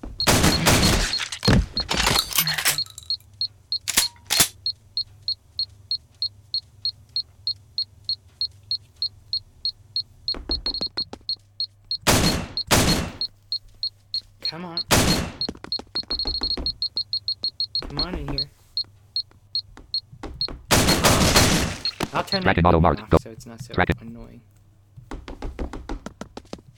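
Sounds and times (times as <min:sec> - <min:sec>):
rapid electronic beeping in a video game: 0:00.0 - 0:23.2, 0:23.8 - 0:24.0
sport rifle gunshots in a video game: 0:00.3 - 0:01.8, 0:12.1 - 0:13.2, 0:20.7 - 0:22.3
speech: 0:22.4 - 0:24.6.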